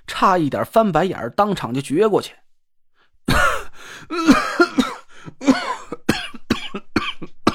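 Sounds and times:
speech: 0:00.2 - 0:02.4
violent coughing fit from harsh smoke: 0:03.2 - 0:07.5.

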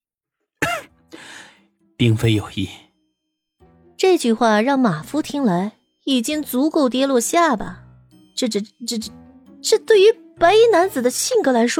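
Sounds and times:
man clearing his throat with a cough: 0:00.6 - 0:01.0
speech: 0:02.0 - 0:02.8, 0:04.0 - 0:07.8, 0:08.4 - 0:11.7.

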